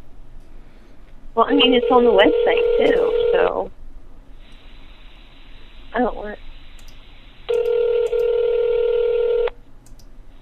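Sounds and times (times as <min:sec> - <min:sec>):
speech: 0:01.4 - 0:03.8
telephone dialing tone: 0:01.8 - 0:03.6, 0:07.5 - 0:09.5.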